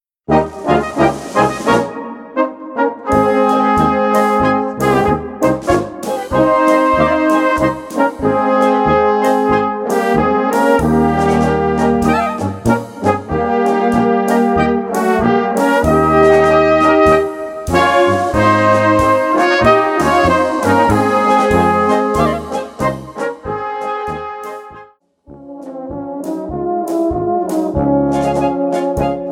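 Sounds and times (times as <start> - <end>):
polka music: 0.3 - 29.2.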